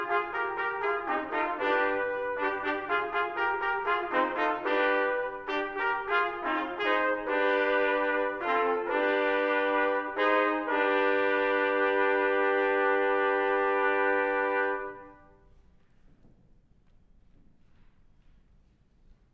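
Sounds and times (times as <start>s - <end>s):
expressive hammered fanfare: 0.0s - 15.3s.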